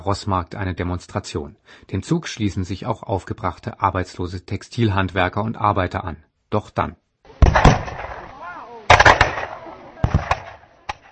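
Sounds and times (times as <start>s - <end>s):
speech: 0.0s - 7.0s
faint shouting voices: 7.3s - 11.1s
military gunfire on demonstrators: 7.4s - 11.0s.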